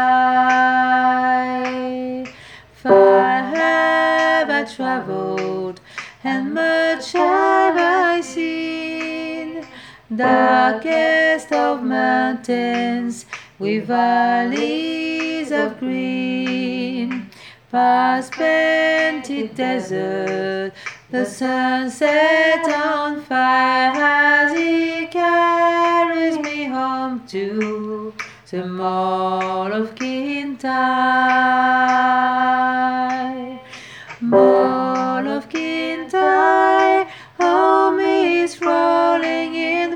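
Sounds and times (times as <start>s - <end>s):
person singing a la la la melody in verses and refrains: 0.0s - 39.9s
alto: 2.9s - 3.8s, 10.2s - 10.9s, 34.2s - 35.2s.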